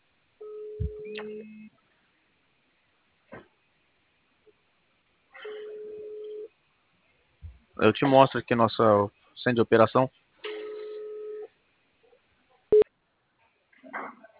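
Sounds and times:
video call ringing tone: 0:00.4 - 0:01.7, 0:10.4 - 0:11.5
speech: 0:07.8 - 0:10.2.

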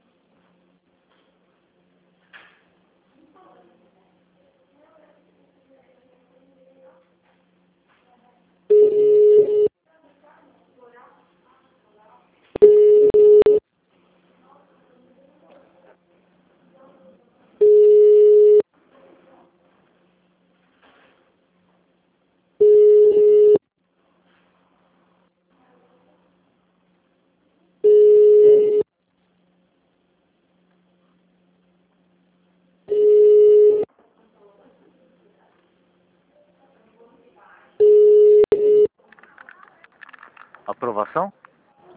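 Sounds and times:
telephone ringback tone during call transfer: 0:08.7 - 0:09.7, 0:12.6 - 0:13.6, 0:17.6 - 0:18.6, 0:22.6 - 0:23.6, 0:27.8 - 0:28.8, 0:32.9 - 0:33.9, 0:37.8 - 0:38.9
speech: 0:41.0 - 0:41.4.

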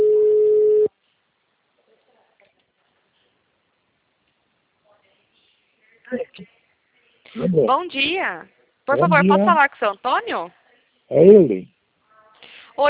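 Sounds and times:
telephone tone as a call is dialed: 0:00.0 - 0:00.9
speech: 0:07.4 - 0:11.8.

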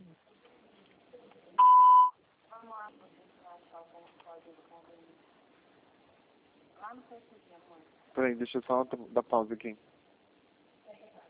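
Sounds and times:
voicemail system signal beep: 0:01.6 - 0:02.2
speech: 0:06.8 - 0:09.9.

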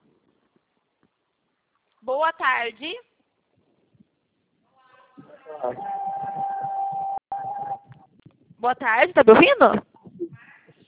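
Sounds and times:
speech: 0:02.0 - 0:03.1, 0:05.5 - 0:06.0, 0:08.6 - 0:09.9
phone line noise: 0:05.6 - 0:07.9.

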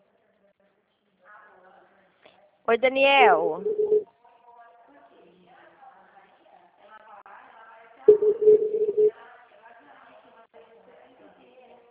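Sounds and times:
speech: 0:02.7 - 0:04.0
telephone tone after a dropped call: 0:03.6 - 0:04.0, 0:08.1 - 0:09.2.

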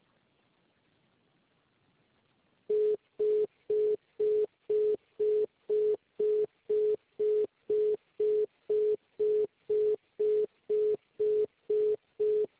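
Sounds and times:
telephone busy tone after a dropped call: 0:02.7 - 0:12.5.

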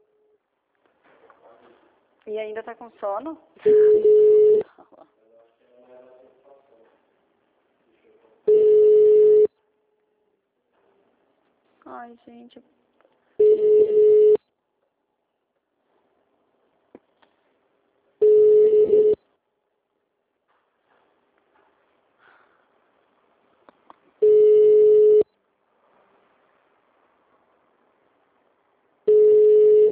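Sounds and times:
speech: 0:02.3 - 0:04.3, 0:11.8 - 0:12.8
unanswered telephone call ringing tone: 0:03.7 - 0:04.6, 0:08.5 - 0:09.5, 0:13.4 - 0:14.4, 0:18.2 - 0:19.2, 0:24.2 - 0:25.3, 0:29.1 - 0:29.9.

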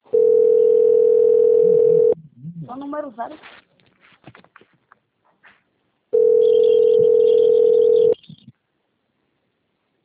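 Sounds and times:
telephone dial tone: 0:00.1 - 0:02.2, 0:06.2 - 0:08.2
speech: 0:02.9 - 0:03.6.

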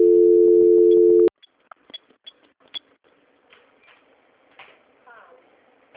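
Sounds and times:
telephone line tones during a call transfer: 0:00.0 - 0:01.3.

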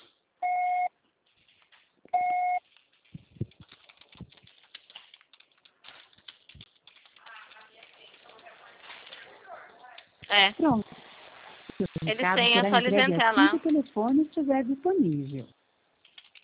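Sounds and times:
voicemail recording beep: 0:00.4 - 0:00.9, 0:02.2 - 0:02.6
rustling: 0:02.6 - 0:13.9
speech: 0:10.3 - 0:10.8, 0:11.8 - 0:15.6.

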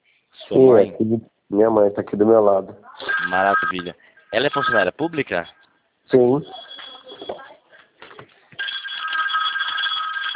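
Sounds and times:
speech: 0:00.5 - 0:06.6
telephone ringing: 0:03.0 - 0:05.6, 0:06.4 - 0:07.5, 0:08.6 - 0:10.3.

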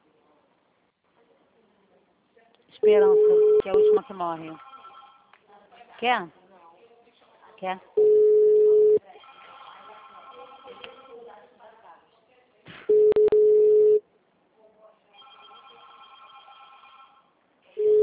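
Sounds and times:
speech: 0:02.8 - 0:04.7, 0:06.0 - 0:06.4, 0:07.6 - 0:08.2
telephone busy signal on a Brazilian call: 0:02.9 - 0:04.0, 0:08.0 - 0:09.0, 0:12.9 - 0:14.0, 0:17.8 - 0:18.0.

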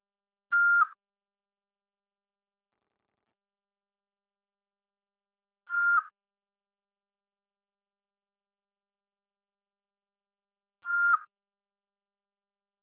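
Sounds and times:
voicemail signal beeps on a phone call: 0:00.5 - 0:01.0, 0:05.7 - 0:06.1, 0:10.8 - 0:11.3.

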